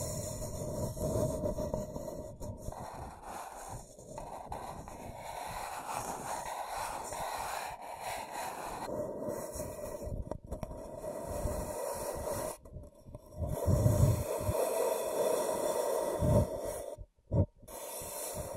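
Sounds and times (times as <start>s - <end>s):
scratching and tracing: 0.0s - 18.5s.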